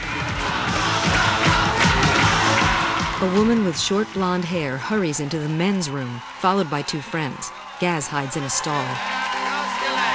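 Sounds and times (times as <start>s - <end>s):
lively club crowd roaring: 0.0s - 10.1s
speech: 3.2s - 9.2s
shouts, yells and whoops: 6.0s - 10.1s.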